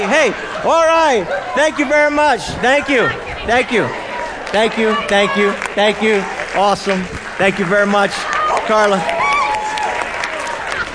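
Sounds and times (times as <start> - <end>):
speech: 0.0 - 9.2
crowd cheering: 0.0 - 10.9
audience applause: 3.6 - 10.9.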